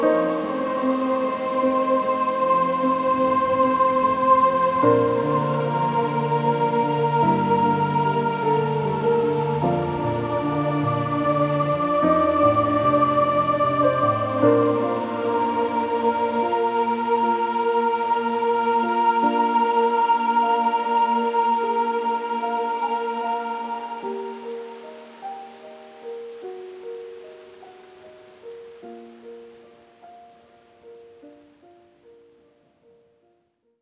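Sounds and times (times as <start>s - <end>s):
classical sleep music: 0.0s - 33.8s.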